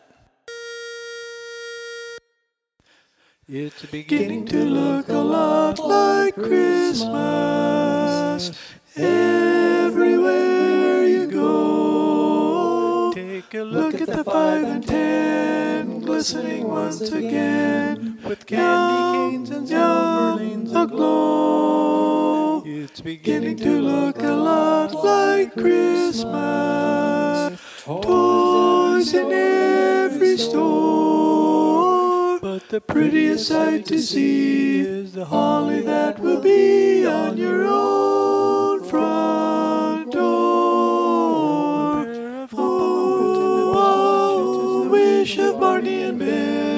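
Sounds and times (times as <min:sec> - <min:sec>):
tenor singing: 0:03.5 - 0:46.7.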